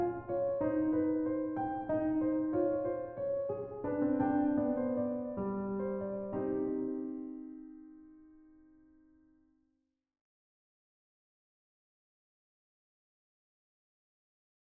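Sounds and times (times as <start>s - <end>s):
piano minuet in G minor: 0.0s - 9.2s.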